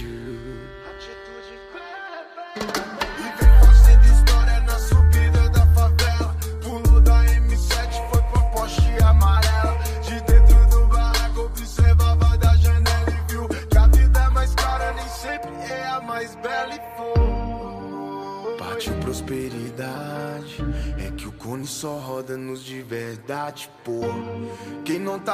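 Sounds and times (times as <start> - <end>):
deep bass: 3.4 - 15.4, 17.2 - 17.8.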